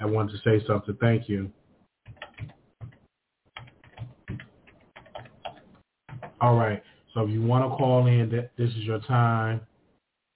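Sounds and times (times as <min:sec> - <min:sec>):
speech: 0:00.0 - 0:01.6, 0:06.4 - 0:09.7
keyboard typing a number: 0:02.0 - 0:06.4.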